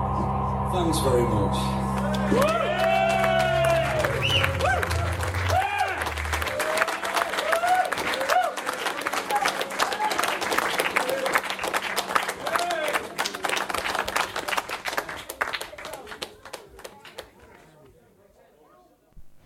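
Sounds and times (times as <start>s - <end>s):
speech: 0.2s - 2.8s
crowd clapping: 1.8s - 17.8s
voices whooping and cheering: 2.0s - 11.4s.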